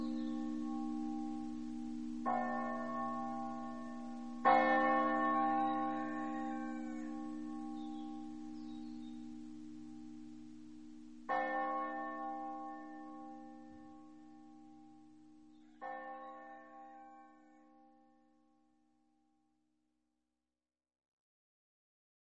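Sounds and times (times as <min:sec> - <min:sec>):
church bells ringing in Resia: 0:00.0 - 0:17.7.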